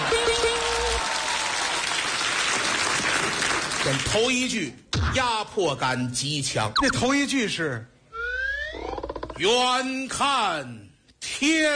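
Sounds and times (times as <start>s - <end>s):
audience applause: 0.0s - 4.1s
speech: 3.8s - 7.9s, 9.4s - 11.7s.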